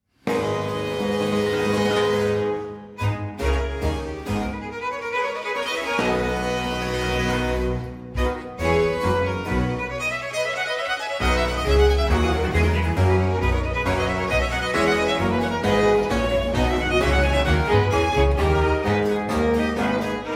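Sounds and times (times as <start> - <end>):
sonata in A minor: 0.1 - 20.3.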